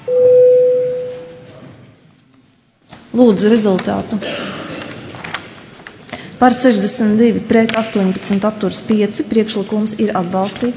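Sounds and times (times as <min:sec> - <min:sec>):
parliament chamber vote bell electronic tone: 0:00.0 - 0:01.5
speech: 0:03.1 - 0:04.4, 0:06.4 - 0:10.7.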